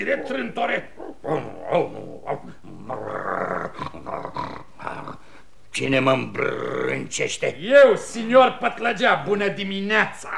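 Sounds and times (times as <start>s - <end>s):
speech: 0.0s - 2.5s, 5.8s - 10.3s
dog snoring: 0.0s - 5.4s.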